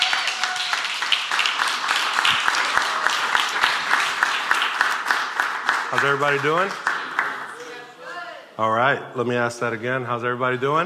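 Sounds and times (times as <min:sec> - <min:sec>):
audience applause: 0:00.0 - 0:07.7
speech: 0:05.9 - 0:06.9, 0:08.6 - 0:10.8.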